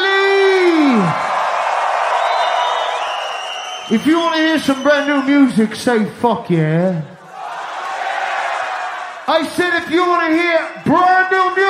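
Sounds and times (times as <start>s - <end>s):
large concert crowd cheering: 0.0s - 6.2s, 6.9s - 11.6s
shrill whistles: 1.9s - 5.6s, 10.4s - 11.5s
speech: 3.9s - 7.1s, 9.3s - 11.6s.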